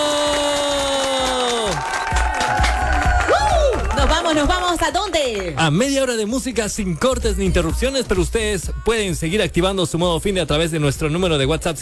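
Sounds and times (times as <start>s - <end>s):
applause for a DJ: 0.0s - 6.2s
speech: 4.3s - 11.8s.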